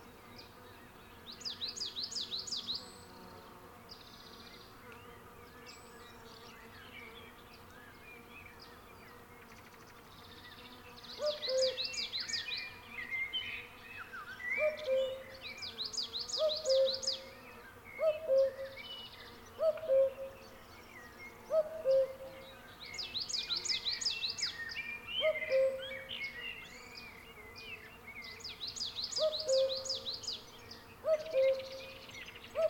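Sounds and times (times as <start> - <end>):
songbirds twittering: 0.0 - 32.6
cuckoo calling: 11.2 - 11.8, 14.6 - 15.2, 16.4 - 17.1, 18.0 - 18.7, 19.6 - 20.4, 21.5 - 22.4, 25.2 - 25.9, 29.2 - 30.0, 31.0 - 31.9.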